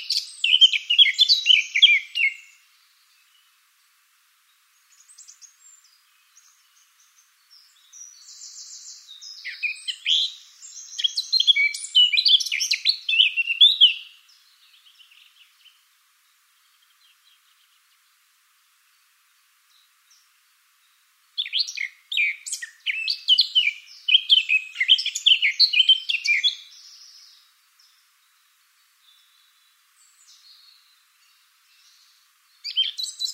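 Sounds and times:
Eurasian blackcap singing: 0.0 - 2.6, 4.9 - 15.8, 21.4 - 27.4, 29.1 - 33.3.

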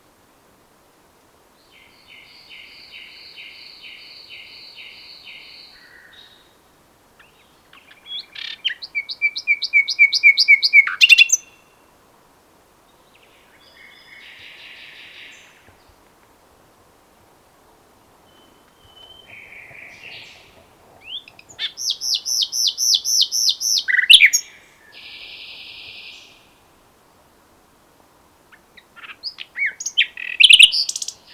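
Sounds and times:
common nightingale singing: 1.6 - 6.6, 7.2 - 12.0, 12.8 - 16.0, 18.1 - 26.7, 28.5 - 31.3.

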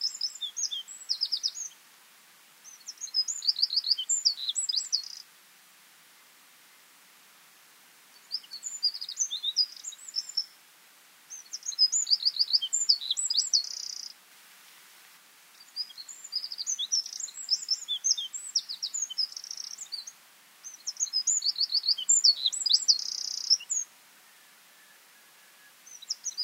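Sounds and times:
Eurasian wren Troglodytes troglodytes song: 0.0 - 1.8, 2.6 - 5.3, 8.1 - 10.6, 11.3 - 14.2, 15.5 - 26.4.

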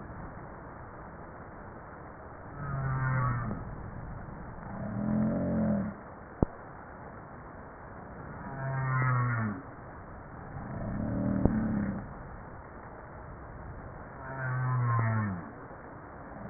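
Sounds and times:
humpback whale song with moans, downsweeps and pulsed tonal phrases: 2.4 - 6.0, 8.2 - 9.7, 10.4 - 12.1, 14.1 - 15.6.

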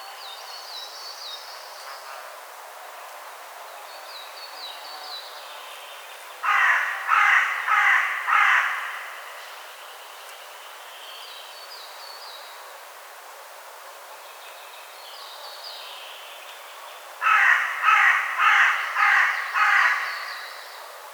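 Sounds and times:
Carrion crow Corvus corone cawing: 6.4 - 9.3, 17.2 - 20.7.

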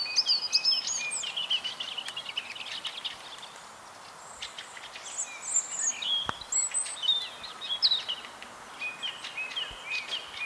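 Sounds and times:
European robin song: 0.0 - 10.4.

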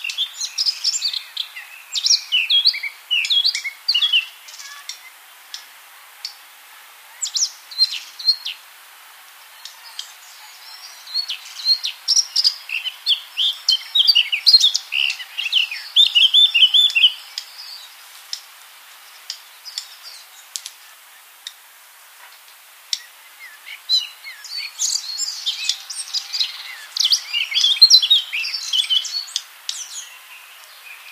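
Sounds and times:
Eurasian blackcap singing: 0.0 - 5.2, 7.2 - 8.6, 9.6 - 17.9, 22.9 - 31.1.

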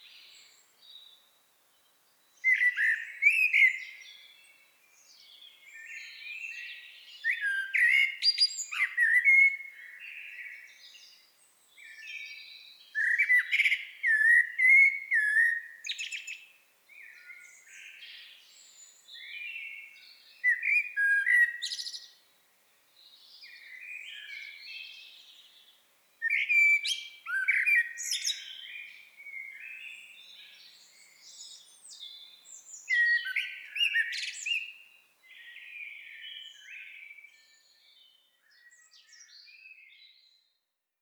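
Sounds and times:
Eurasian blackbird singing: 2.3 - 22.2, 23.0 - 40.4.

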